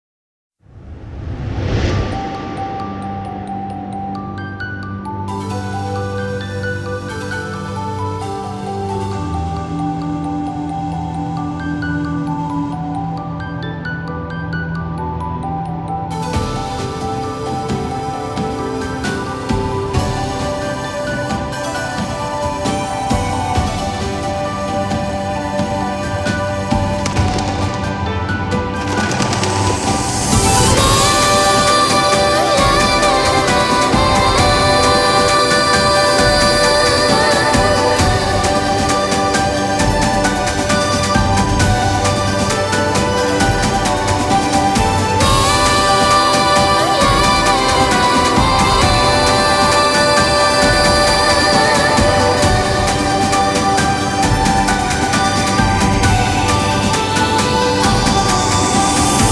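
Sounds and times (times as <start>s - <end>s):
instrumental music: 2.1s - 59.2s.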